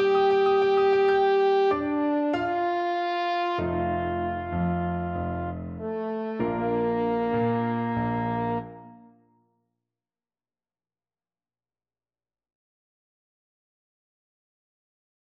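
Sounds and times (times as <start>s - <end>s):
French horn: 0.0s - 9.1s.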